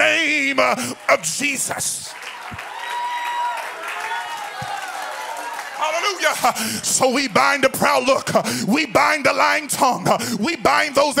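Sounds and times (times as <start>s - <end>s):
audience clapping hands: 0.2s - 8.0s
speech: 0.5s - 2.6s, 5.9s - 11.1s.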